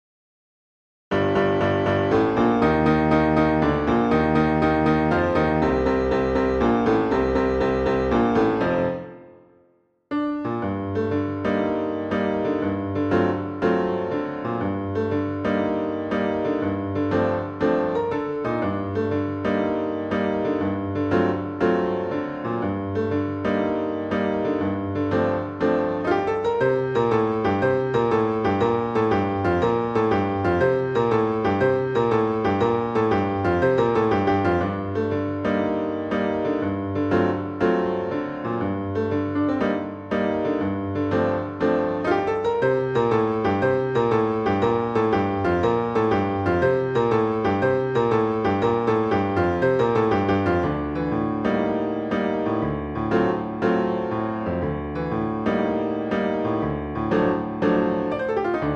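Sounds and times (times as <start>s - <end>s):
jazz piano miniature: 1.1s - 58.7s.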